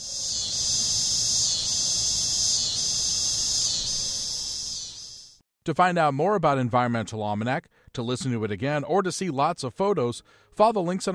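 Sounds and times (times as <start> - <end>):
cicadas singing in trees: 0.0 - 5.4
speech: 5.6 - 11.1.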